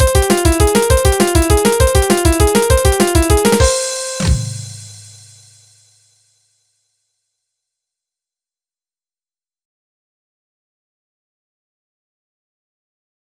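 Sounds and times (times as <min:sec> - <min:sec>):
tone: 0:00.0 - 0:04.5.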